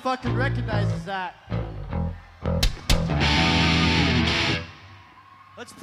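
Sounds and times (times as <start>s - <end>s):
live encore jam at Arco Arena: 0.3s - 4.9s.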